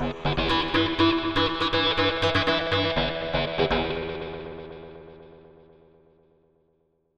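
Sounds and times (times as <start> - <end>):
electro loop: 0.0 - 4.5.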